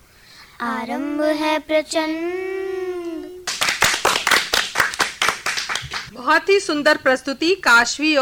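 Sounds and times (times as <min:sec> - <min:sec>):
speech: 0:00.6 - 0:02.5, 0:06.2 - 0:08.2
audience applause: 0:03.5 - 0:06.1.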